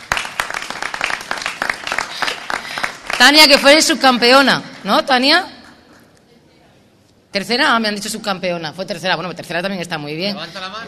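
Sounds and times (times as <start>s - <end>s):
applause: 0.0s - 4.0s
speech: 3.2s - 5.6s, 7.4s - 10.8s.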